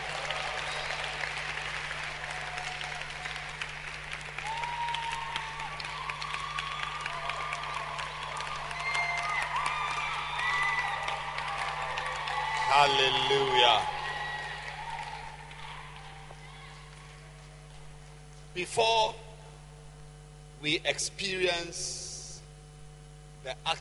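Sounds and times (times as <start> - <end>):
audience clapping: 0.0 - 17.8
speech: 12.8 - 13.9, 20.6 - 22.0, 23.5 - 23.8.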